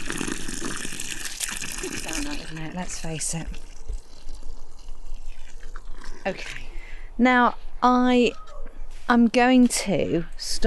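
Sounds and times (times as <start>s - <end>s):
water poured into a planting hole: 0.0s - 6.7s
speech: 2.5s - 3.6s, 6.3s - 6.6s, 7.2s - 8.4s, 9.1s - 10.6s.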